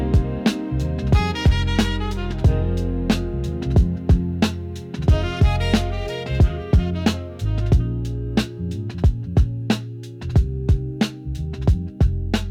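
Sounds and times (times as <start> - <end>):
boom bap rap beat: 0.0 - 12.4.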